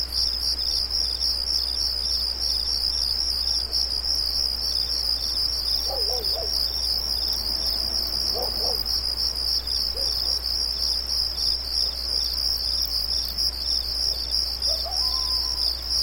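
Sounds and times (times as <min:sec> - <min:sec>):
crickets trilling at night: 0:00.0 - 0:16.0.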